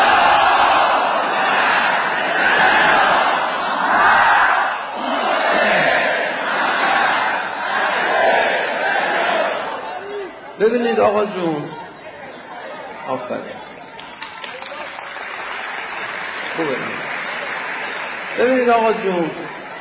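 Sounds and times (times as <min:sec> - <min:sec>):
congregation reciting salawat in unison: 0:00.0 - 0:10.1
speech: 0:10.7 - 0:11.8, 0:13.1 - 0:13.7, 0:16.6 - 0:17.0, 0:18.4 - 0:19.6.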